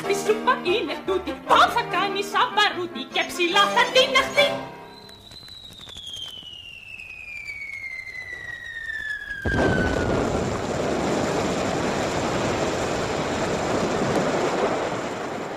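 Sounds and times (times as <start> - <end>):
speech: 0.2 - 4.7
thunder: 7.8 - 15.5.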